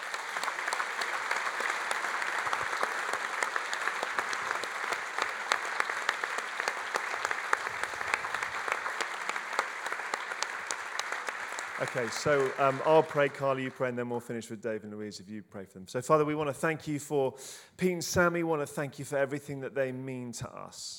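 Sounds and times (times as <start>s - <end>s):
church audience applause: 0.0s - 14.0s
speech: 11.8s - 20.9s.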